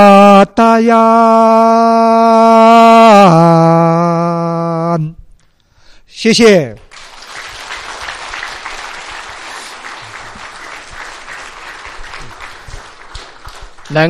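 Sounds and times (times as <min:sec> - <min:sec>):
speech: 0:00.0 - 0:04.4, 0:06.2 - 0:06.8
audience applause: 0:06.9 - 0:14.0.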